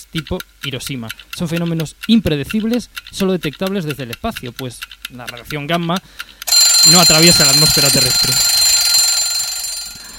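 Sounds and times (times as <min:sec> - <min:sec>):
speech: 0:00.0 - 0:08.6
bell ringing to end time: 0:06.5 - 0:10.1.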